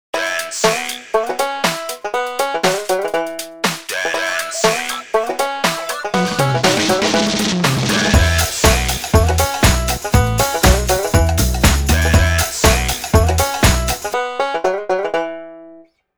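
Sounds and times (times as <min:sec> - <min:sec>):
folk dance music: 0:00.3 - 0:14.2.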